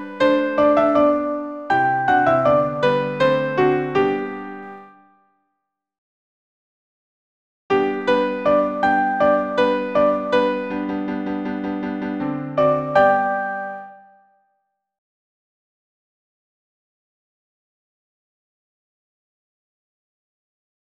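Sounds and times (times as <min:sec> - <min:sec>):
soprano piano accompaniment: 0:00.0 - 0:05.1, 0:07.7 - 0:14.2.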